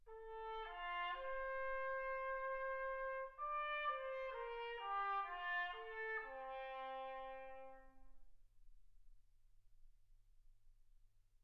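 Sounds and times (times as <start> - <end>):
trumpet: 0.1 - 8.2.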